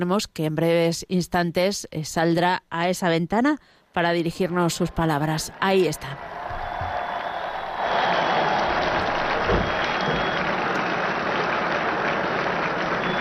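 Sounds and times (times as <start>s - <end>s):
speech: 0.0s - 6.4s
pilgrims in crowd applauding: 4.4s - 13.1s.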